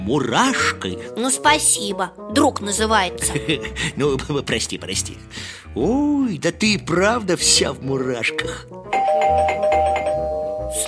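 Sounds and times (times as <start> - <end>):
speech: 0.1 - 9.6
laughter: 3.3 - 4.0
electronic doorbell ringing insistently: 8.9 - 10.8.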